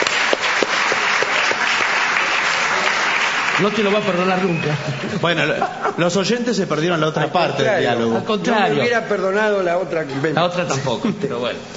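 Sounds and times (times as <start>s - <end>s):
audience applause: 0.0s - 5.7s
laughter: 3.6s - 6.4s, 10.2s - 11.6s
speech: 3.6s - 11.7s.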